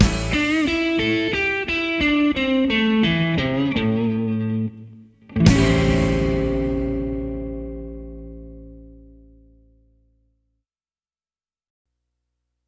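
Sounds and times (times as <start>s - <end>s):
slow tempo rock and roll music: 0.0s - 9.6s.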